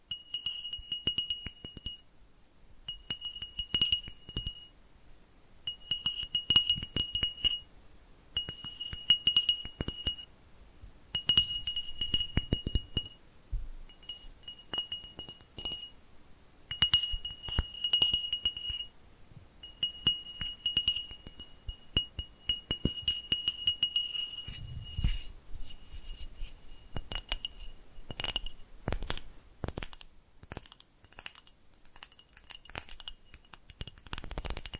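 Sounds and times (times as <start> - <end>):
fast dense tapping with a glassy ring: 0.0 - 2.1, 2.8 - 4.8, 5.7 - 7.7, 8.4 - 10.3, 11.1 - 13.2, 13.9 - 16.0, 16.7 - 18.9, 19.6 - 34.7
soft low thumps: 13.5 - 13.9.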